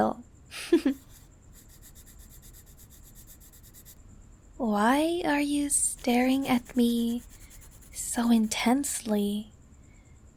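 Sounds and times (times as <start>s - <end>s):
speech: 0.0s - 1.0s, 4.6s - 7.4s, 8.1s - 9.5s
sketching strokes drawing a person's eyes: 0.9s - 4.0s, 4.8s - 9.0s.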